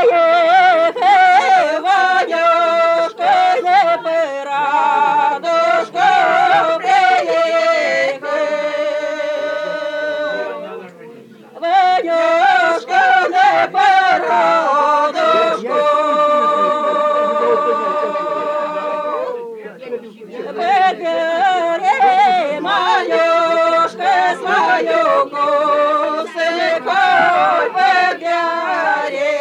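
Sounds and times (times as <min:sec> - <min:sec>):
laughter: 0:00.0 - 0:02.6, 0:03.2 - 0:08.1, 0:12.0 - 0:19.5, 0:20.4 - 0:29.4
wedding song singing: 0:00.0 - 0:29.4.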